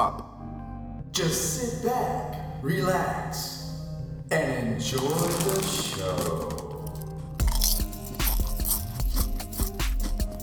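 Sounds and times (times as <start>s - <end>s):
speech: 1.2s - 3.7s, 4.3s - 6.6s
crunching potato chips: 4.9s - 10.4s.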